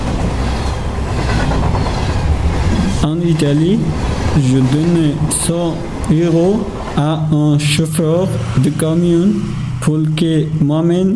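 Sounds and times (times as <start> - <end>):
train running on rails: 0.0 - 11.1
speech: 3.0 - 11.1.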